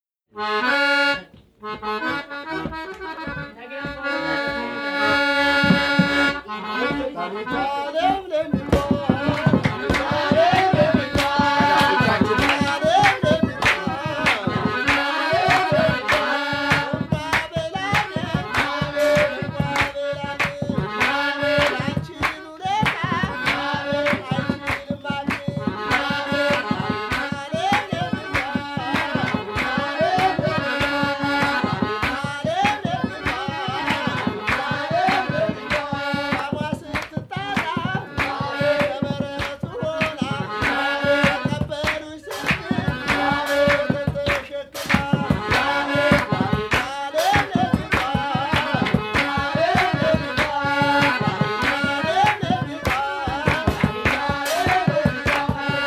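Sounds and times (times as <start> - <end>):
urban tribal music: 1.7 - 55.8.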